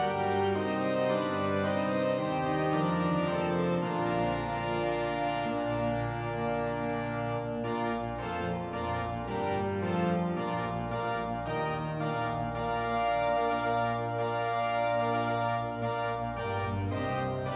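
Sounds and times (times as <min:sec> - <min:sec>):
virtual church organ: 0:00.0 - 0:17.5.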